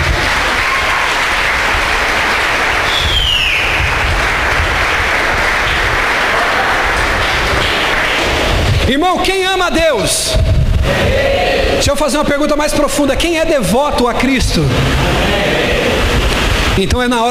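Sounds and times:
church audience applauding: 0.0s - 8.9s
rising whistle-like tone: 2.9s - 3.9s
speech: 9.1s - 15.5s, 16.8s - 17.2s.

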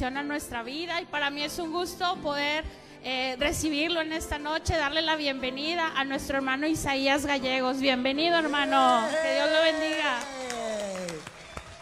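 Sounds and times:
speech: 0.0s - 10.4s
audience applause: 8.5s - 11.8s.

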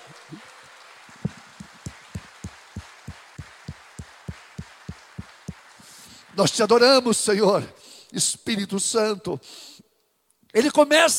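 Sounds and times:
audience applauding: 0.0s - 6.9s
speech: 6.4s - 9.8s, 10.5s - 11.1s.

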